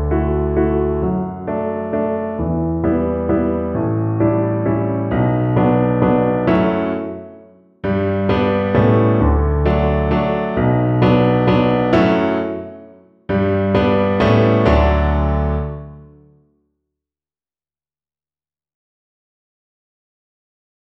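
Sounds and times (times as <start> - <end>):
piano accompaniment: 0.0 - 16.4.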